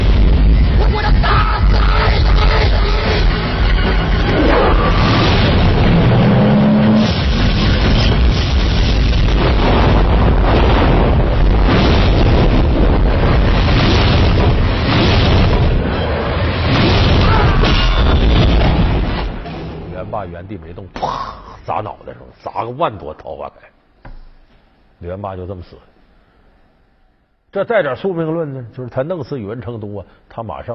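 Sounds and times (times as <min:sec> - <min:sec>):
thunderclap sound effect: 0:00.0 - 0:20.1
speech: 0:22.7 - 0:23.8, 0:25.0 - 0:25.9, 0:27.6 - 0:30.7.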